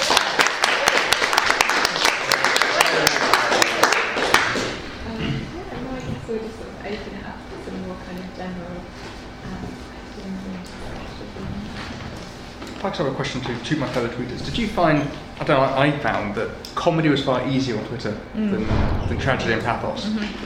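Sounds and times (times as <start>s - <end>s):
audience applause: 0.0s - 5.0s
speech: 13.0s - 20.4s.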